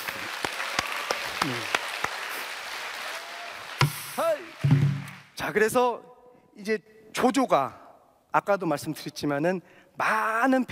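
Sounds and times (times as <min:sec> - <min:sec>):
audience applause: 0:00.0 - 0:05.4
speech: 0:05.5 - 0:10.6.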